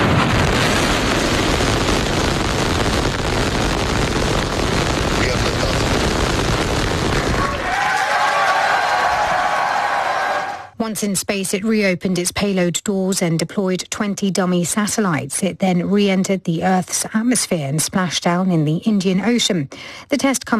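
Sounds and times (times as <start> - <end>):
Starship rocket blasting off from launch pad in Texas: 0.0 - 8.0
SpaceX employees cheering: 7.1 - 10.7
speech: 10.9 - 20.5.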